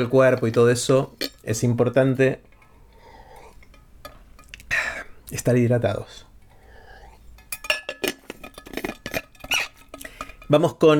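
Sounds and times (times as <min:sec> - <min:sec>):
speech: 0:00.0 - 0:02.5, 0:05.3 - 0:06.3, 0:10.5 - 0:10.9
glass clinking as it is handled and set down: 0:00.2 - 0:01.6, 0:03.4 - 0:04.6, 0:07.3 - 0:10.6.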